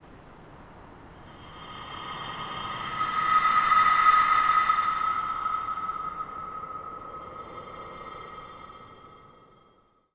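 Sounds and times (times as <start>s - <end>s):
horror moment sting: 1.3s - 9.5s.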